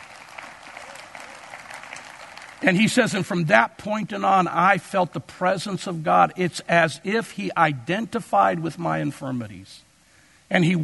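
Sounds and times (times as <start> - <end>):
crowd hand clapping: 0.0 - 3.1
speech: 2.6 - 9.9, 10.5 - 10.8.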